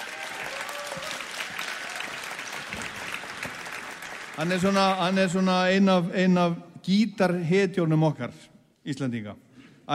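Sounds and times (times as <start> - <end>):
audience applause for a prize-winning Icelandic guitarist: 0.0 - 5.2
speech: 4.4 - 9.9.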